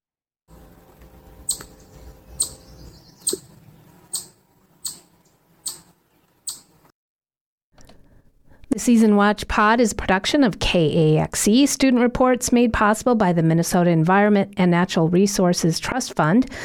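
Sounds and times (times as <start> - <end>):
chipmunk alarm call when scared: 1.4 - 6.8
speech: 8.8 - 16.6.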